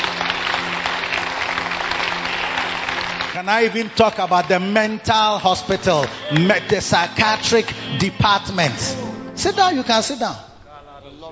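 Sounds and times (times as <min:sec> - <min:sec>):
audience clapping: 0:00.0 - 0:09.0
speech: 0:03.4 - 0:10.5.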